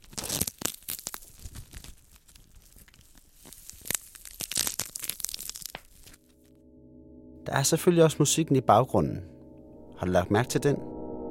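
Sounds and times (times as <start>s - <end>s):
cabbage leaves being crushed and torn: 0.0s - 6.3s
speech: 7.5s - 9.4s, 10.0s - 10.9s.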